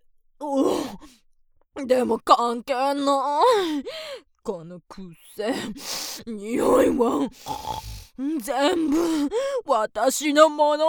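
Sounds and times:
speech: 1.8 - 10.8
vulgar pig-like nasal snort: 7.4 - 8.2.

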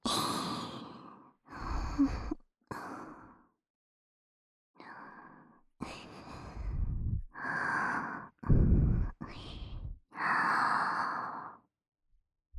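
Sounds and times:
woman breathing softly: 0.3 - 3.4, 4.8 - 11.7.

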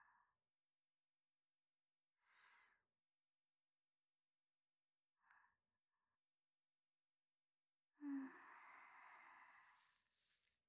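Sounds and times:
sleeping breathing on the left channel: 8.0 - 10.0.

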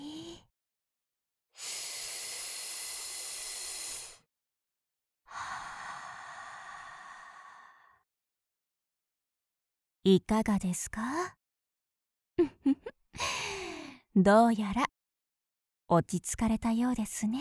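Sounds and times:
slow deep breathing: 1.6 - 4.2, 5.3 - 8.0, 13.2 - 14.0
speech: 10.0 - 11.4, 12.4 - 13.4, 14.2 - 14.9, 15.9 - 17.3.

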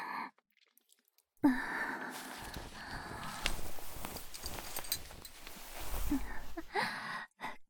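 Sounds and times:
slow wet oral sucking sounds: 1.5 - 6.8.

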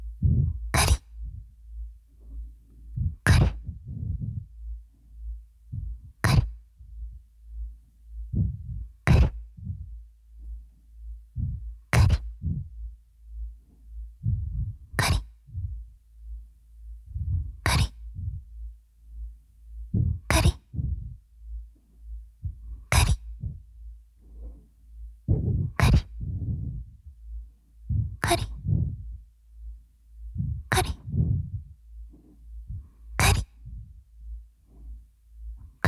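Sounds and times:
ASMR scratching loop: 0.2 - 1.5, 3.2 - 4.5, 5.8 - 6.6, 8.4 - 9.8, 11.9 - 12.7, 14.2 - 15.6, 17.4 - 18.4, 20.0 - 21.2, 22.4 - 23.6, 25.3 - 27.0, 28.1 - 29.0, 30.4 - 31.7, 32.7 - 34.0.

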